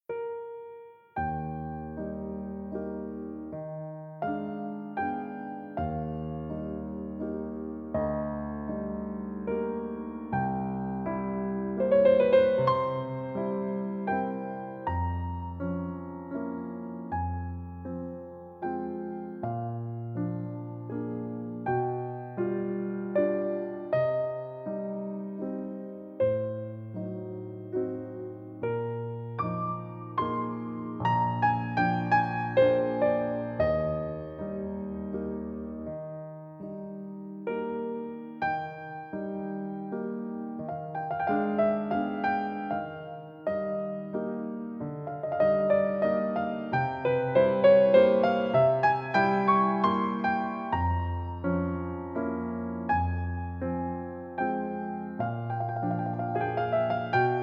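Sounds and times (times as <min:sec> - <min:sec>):
piano nocturne: 0:00.0 - 0:57.4.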